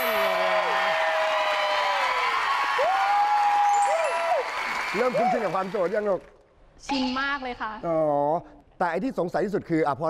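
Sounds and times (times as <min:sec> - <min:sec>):
rising whoops: 0:00.0 - 0:05.4
crowd clapping and cheering: 0:00.0 - 0:06.5
speech: 0:04.9 - 0:10.0.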